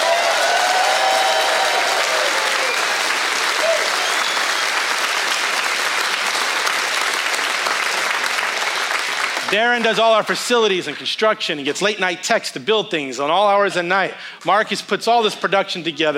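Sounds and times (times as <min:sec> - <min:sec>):
loud crowd clapping: 0:00.0 - 0:11.1
speech: 0:09.5 - 0:16.1.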